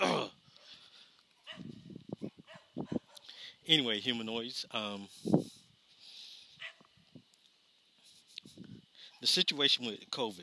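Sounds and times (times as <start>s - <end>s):
dogs barking outdoors: 1.4s - 3.4s, 6.6s - 6.9s
speech: 3.7s - 5.4s, 9.3s - 10.4s.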